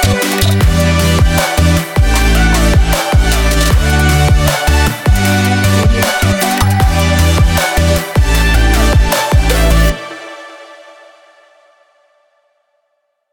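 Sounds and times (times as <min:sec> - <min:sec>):
energetic emotional future bass music: 0:00.0 - 0:10.3.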